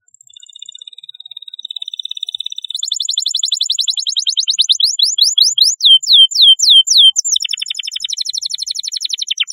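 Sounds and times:
canary in long varied song: 0.2s - 9.5s.

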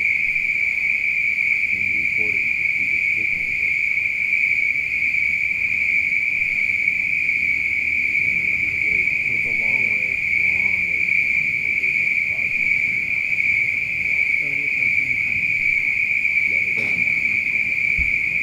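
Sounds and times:
spring peepers calling en masse at night: 0.0s - 18.4s
laughter: 8.3s - 18.4s.

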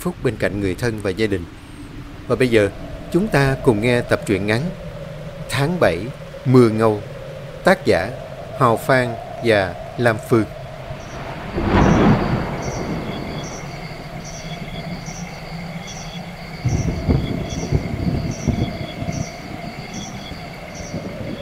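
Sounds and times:
speech: 0.0s - 1.6s, 2.3s - 4.8s, 5.5s - 10.6s
steady hiss: 0.0s - 21.4s
sharp thunderclap: 1.8s - 21.4s
faint regularly pulsing high chirp: 5.4s - 21.0s.

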